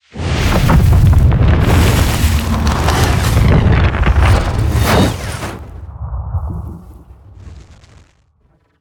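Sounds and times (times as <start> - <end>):
evolving fire swoosh bursts: 0.4 - 8.8.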